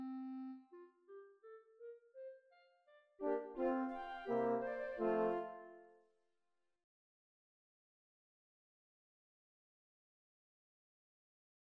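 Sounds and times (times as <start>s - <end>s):
full ensemble playing: 3.2s - 5.6s.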